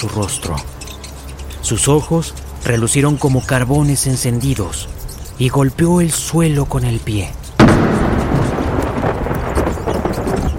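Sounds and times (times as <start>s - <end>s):
speech: 0.0s - 0.8s, 1.6s - 8.4s
thunderclap sound effect: 7.6s - 10.5s.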